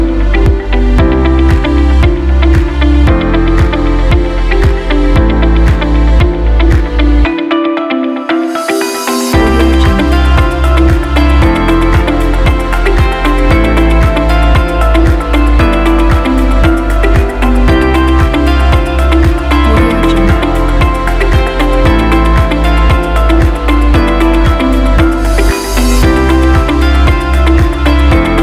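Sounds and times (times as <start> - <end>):
upbeat and inspiring corporate music: 0.0 - 28.4.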